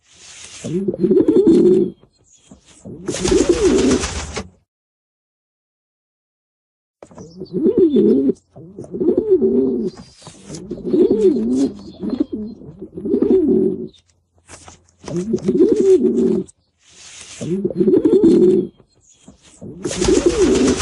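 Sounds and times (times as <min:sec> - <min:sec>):
pigeons cooing in nature: 0:00.6 - 0:02.0, 0:02.8 - 0:04.0, 0:07.2 - 0:13.9, 0:15.1 - 0:16.5, 0:17.4 - 0:18.8, 0:19.6 - 0:20.8.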